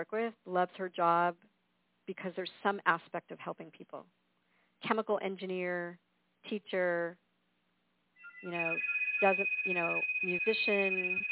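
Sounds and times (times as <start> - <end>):
speech: 0.0 - 1.5, 2.1 - 4.2, 4.8 - 7.2, 8.4 - 11.3
phone electronic ringtone: 8.2 - 11.3.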